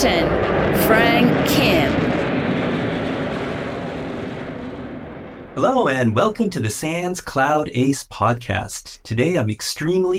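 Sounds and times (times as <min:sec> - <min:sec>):
airplane taking off: 0:00.0 - 0:07.5
speech: 0:05.6 - 0:10.1.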